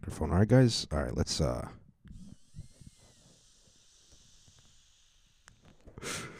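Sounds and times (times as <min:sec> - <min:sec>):
speech: 0:00.0 - 0:01.8
faint high whine: 0:02.0 - 0:06.3
person taking a puff of smoke: 0:05.8 - 0:06.3.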